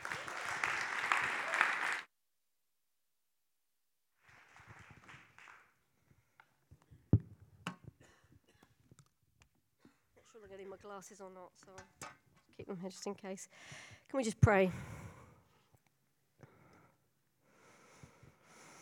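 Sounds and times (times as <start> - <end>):
audience applause welcoming a guest at a church gathering: 0.0 - 2.1, 4.2 - 5.8
speech: 10.5 - 12.0, 12.6 - 15.0.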